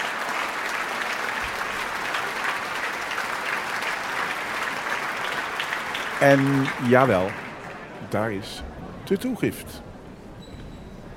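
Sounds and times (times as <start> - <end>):
concert audience applause: 0.0 - 8.5
speech: 6.2 - 7.4, 8.1 - 9.9.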